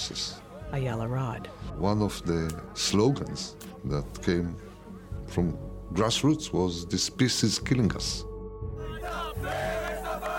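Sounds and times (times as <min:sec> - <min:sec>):
speech: 0:00.1 - 0:04.7, 0:05.3 - 0:08.3, 0:09.0 - 0:09.8
protest crowd chanting and shouting: 0:08.8 - 0:10.3.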